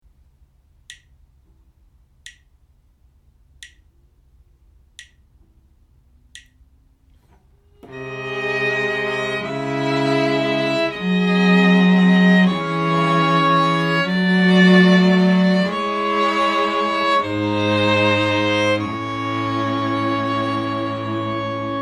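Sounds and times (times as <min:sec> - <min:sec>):
string quartet playing: 0:07.7 - 0:21.8.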